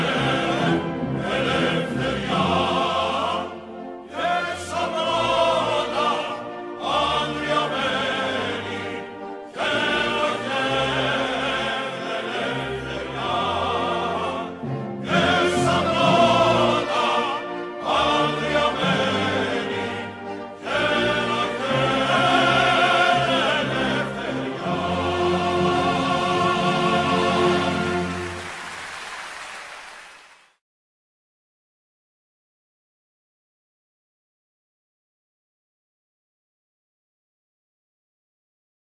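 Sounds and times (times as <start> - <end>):
national anthem: 0.0 - 30.4.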